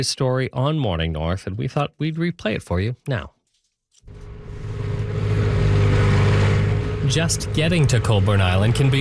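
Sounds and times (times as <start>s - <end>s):
speech: 0.0s - 3.4s, 7.1s - 8.9s
outboard motor of a small Zodiac inflatable boat crossing to Cockburn Island: 4.1s - 8.9s.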